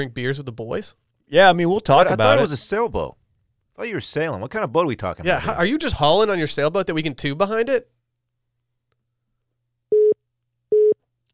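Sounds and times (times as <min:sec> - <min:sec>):
speech: 0:00.0 - 0:03.2, 0:03.8 - 0:08.0
telephone busy tone after call hang-up: 0:09.9 - 0:11.0.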